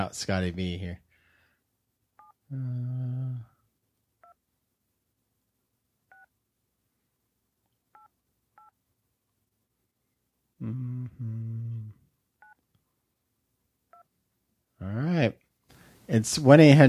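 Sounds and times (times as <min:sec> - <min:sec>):
speech: 0:00.0 - 0:01.0, 0:02.5 - 0:03.5, 0:10.6 - 0:11.6, 0:14.8 - 0:15.4, 0:16.1 - 0:16.8
telephone keypad tones dialing a 1-800 number: 0:08.0 - 0:08.7.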